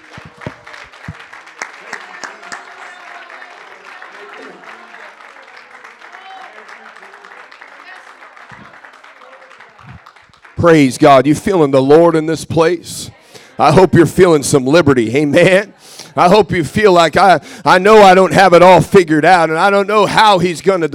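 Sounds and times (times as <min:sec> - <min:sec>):
people clapping hands: 0:00.0 - 0:11.6
speech: 0:10.6 - 0:20.9.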